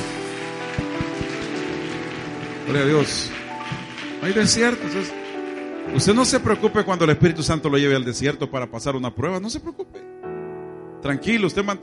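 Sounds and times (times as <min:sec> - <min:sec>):
audience applauding: 0:00.0 - 0:07.0
speech: 0:02.7 - 0:05.2, 0:05.8 - 0:10.1, 0:11.0 - 0:11.8.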